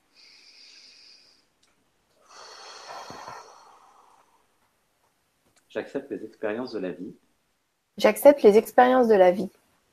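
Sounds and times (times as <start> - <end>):
deep breath: 0.0 - 1.6, 2.2 - 4.7
speech: 5.8 - 7.2, 8.0 - 9.6.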